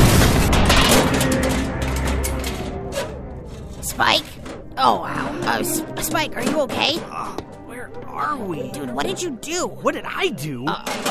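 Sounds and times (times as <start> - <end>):
spaceship crash landing rumbling and grinding: 0.0 - 4.8
speech: 4.0 - 11.1.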